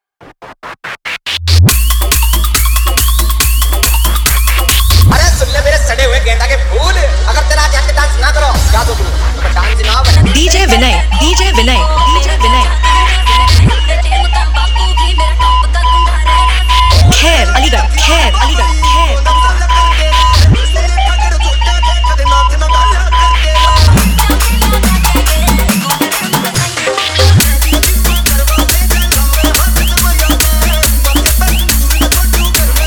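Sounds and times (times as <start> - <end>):
EDM competition remix: 0.2 - 32.8.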